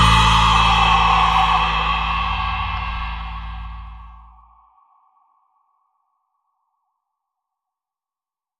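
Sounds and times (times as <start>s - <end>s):
scary action music: 0.0s - 4.4s.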